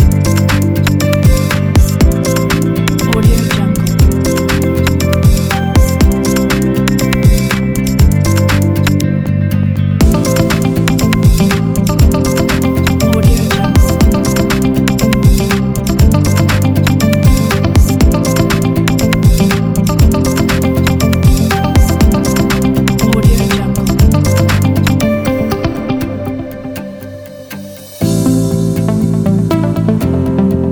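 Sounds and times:
corporate ambient music: 0.0 - 30.7.

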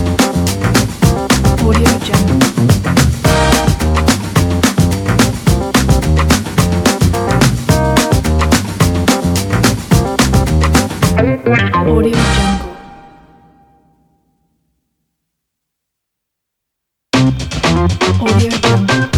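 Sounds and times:
upbeat funky beats: 0.0 - 12.7, 17.2 - 19.1.

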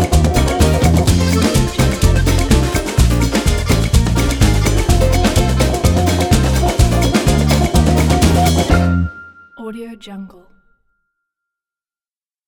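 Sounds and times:
latin party music: 0.0 - 9.5.

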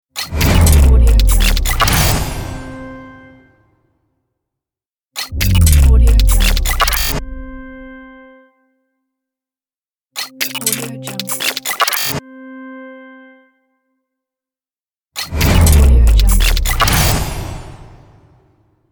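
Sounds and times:
glitchy logo sound: 0.3 - 3.4, 5.3 - 7.9, 15.3 - 18.3.

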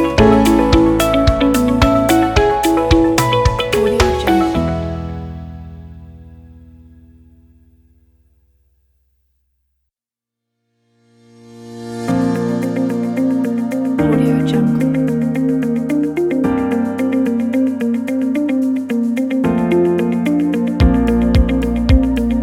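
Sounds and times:
emotional motivational corporate music: 0.0 - 7.0, 11.7 - 22.4.

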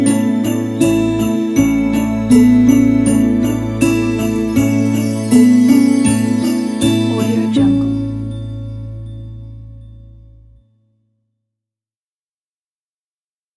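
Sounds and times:
Christmas mood music: 0.0 - 10.6.

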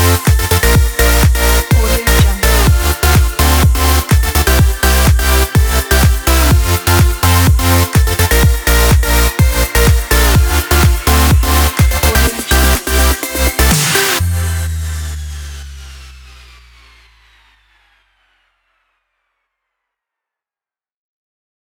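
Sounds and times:
party sport dance music: 0.0 - 17.1.

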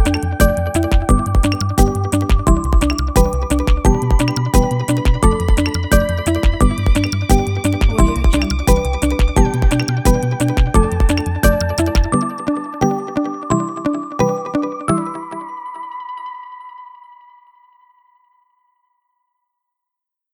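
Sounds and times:
positive rhythmic electronica: 0.0 - 13.9.

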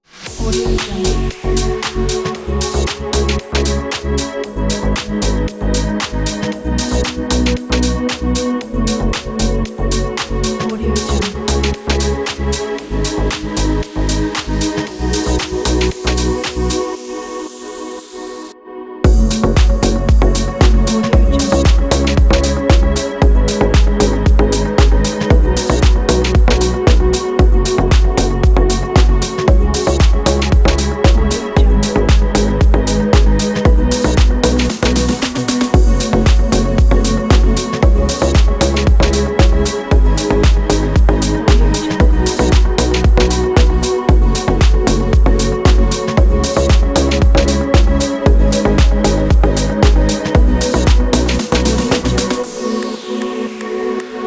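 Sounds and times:
deep house music: 0.0 - 54.2.

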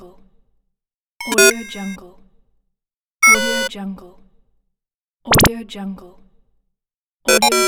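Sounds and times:
game interface sounds: 1.2 - 2.0, 7.3 - 7.6.

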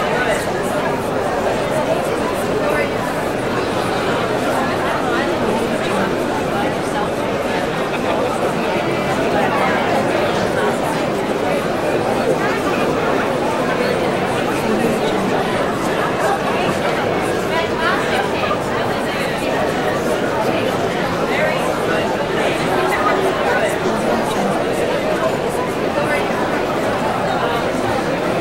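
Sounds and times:
crowd ambience: 0.0 - 28.3.

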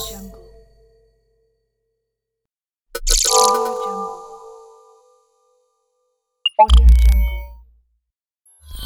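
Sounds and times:
futuristic holographic interface sounds: 3.0 - 4.1, 6.5 - 7.5.

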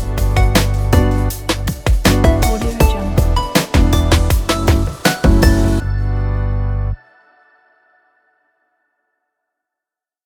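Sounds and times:
chill hip hop music: 0.0 - 7.1.

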